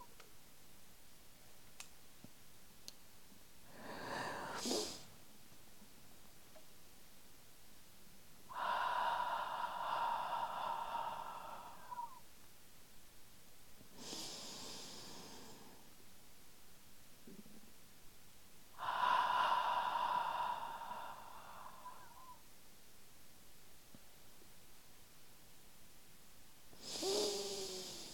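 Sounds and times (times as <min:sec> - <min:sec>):
breathing in through the nose and out through the mouth: 0:03.7 - 0:05.1, 0:08.5 - 0:12.2, 0:13.9 - 0:15.9, 0:18.8 - 0:22.4, 0:26.8 - 0:28.1.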